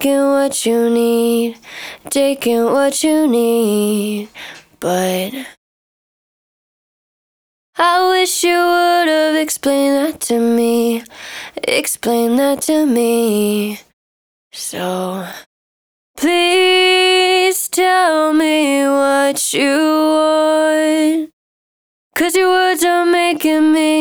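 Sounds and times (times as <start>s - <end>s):
dry main vocal acapella in D sharp minor: 0.0s - 5.6s, 7.8s - 13.9s, 16.2s - 21.3s, 22.2s - 23.9s.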